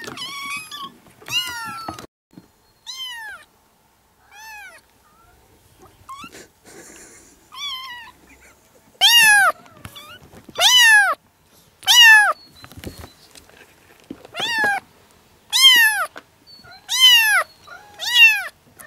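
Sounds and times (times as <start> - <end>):
kittens meowing: 2.9 - 3.5, 4.2 - 5.4, 6.1 - 6.4, 7.5 - 8.2, 9.0 - 11.2, 11.8 - 12.4, 14.3 - 14.8, 15.5 - 18.8.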